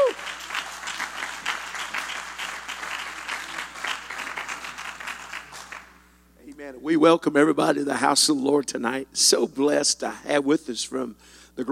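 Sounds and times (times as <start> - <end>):
church congregation applauding in praise: 0.0 - 6.1
speech: 6.8 - 11.6.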